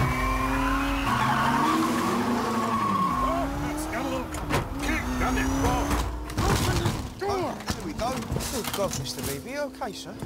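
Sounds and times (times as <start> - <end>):
car tires squealing: 0.0 - 6.5
car accelerating hard: 0.0 - 10.2
speech: 8.8 - 10.2.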